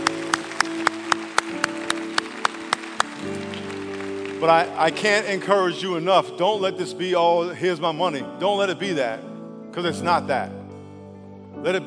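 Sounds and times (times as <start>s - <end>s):
audience applause: 0.0s - 5.2s
speech: 4.4s - 10.6s, 11.6s - 11.8s.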